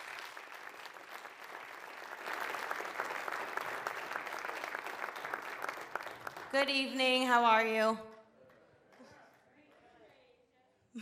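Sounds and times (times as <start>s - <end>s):
audience applause welcoming a Teen Challenge group from Rhode Island: 0.0s - 7.3s
speech: 6.5s - 8.1s.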